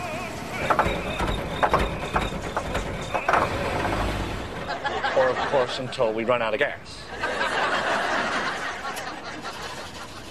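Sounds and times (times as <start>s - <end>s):
car engine idling: 0.0s - 5.3s
brief rattling clicks: 0.6s - 4.8s
laughter: 4.6s - 6.3s, 7.0s - 10.2s
speech: 5.5s - 7.0s.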